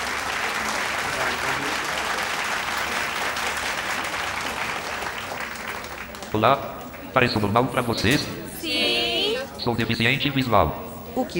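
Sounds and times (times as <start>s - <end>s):
students applauding: 0.0s - 7.1s
speech: 6.3s - 8.4s, 9.6s - 11.3s.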